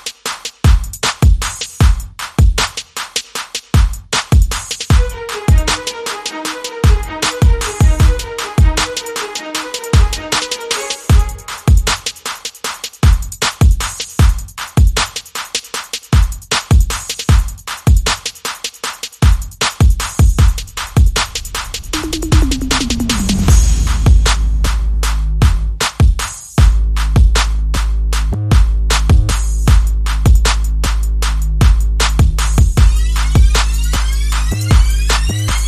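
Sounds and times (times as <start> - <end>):
drums: 0.0 - 35.6
bass: 20.4 - 35.6.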